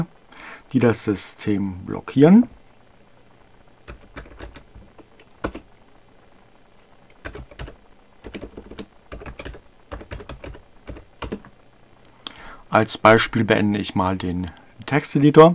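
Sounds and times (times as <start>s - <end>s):
speech: 0.7s - 2.6s, 12.7s - 15.5s
computer keyboard typing a command into a terminal: 3.9s - 5.7s, 7.2s - 11.5s.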